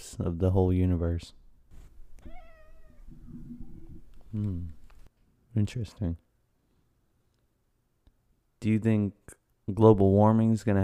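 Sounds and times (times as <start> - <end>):
speech: 0.1 - 1.4, 4.3 - 4.8, 5.6 - 6.2, 8.6 - 10.8
cat meowing: 2.2 - 3.9.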